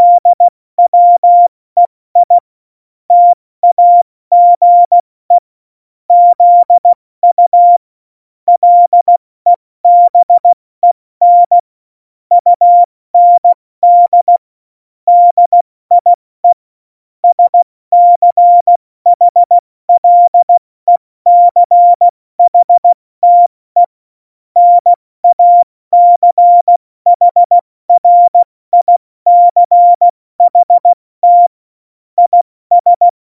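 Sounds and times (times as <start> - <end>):
CW Morse code beeps: 0.0 - 1.5, 2.2 - 2.4, 3.1 - 5.0, 6.1 - 7.8, 8.5 - 9.2, 9.8 - 10.6, 11.2 - 11.6, 12.3 - 14.4, 15.1 - 16.6, 17.2 - 23.9, 24.6 - 31.6, 32.2 - 33.2.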